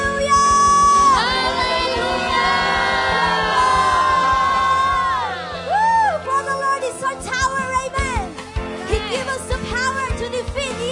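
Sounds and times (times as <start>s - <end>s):
low rhythmic music pulse: 0.0s - 10.8s
audience shouting and cheering: 0.2s - 6.7s.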